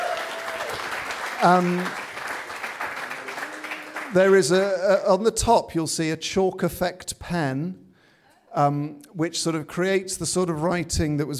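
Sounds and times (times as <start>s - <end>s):
audience applause: 0.0s - 4.8s
speech: 1.4s - 2.0s, 4.1s - 7.8s, 8.5s - 11.3s.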